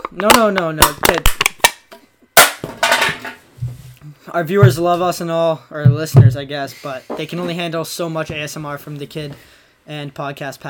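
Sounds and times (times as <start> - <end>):
Red Bull cans being smashed: 0.0 - 3.3
speech: 0.1 - 1.4, 4.2 - 10.6.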